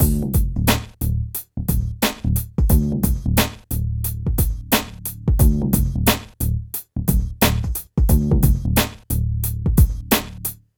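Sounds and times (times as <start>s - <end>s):
phat beat: 0.0s - 1.0s, 1.7s - 6.4s, 7.0s - 10.4s.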